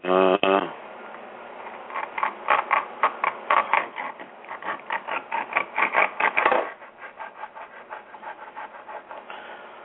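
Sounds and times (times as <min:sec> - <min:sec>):
sawing: 0:01.6 - 0:09.3.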